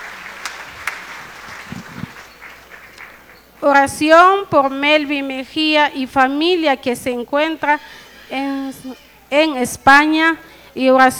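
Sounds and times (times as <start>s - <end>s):
audience applauding: 0.0s - 3.6s
speech: 3.6s - 11.1s.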